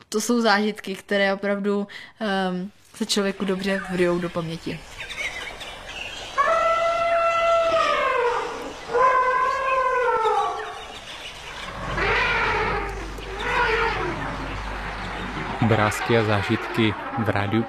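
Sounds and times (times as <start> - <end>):
speech: 0.1 - 5.2, 15.6 - 17.6
elephants trumpeting at waterhole: 5.2 - 17.6.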